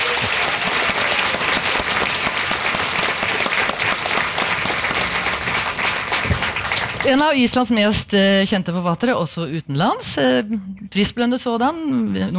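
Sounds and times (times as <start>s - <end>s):
audience applause: 0.0s - 7.3s
speech: 7.1s - 12.3s.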